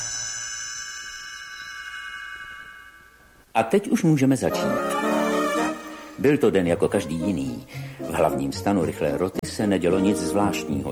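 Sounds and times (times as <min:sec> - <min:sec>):
small bell chime signalling page turn: 0:00.0 - 0:03.5
speech: 0:03.6 - 0:04.9, 0:06.2 - 0:10.9.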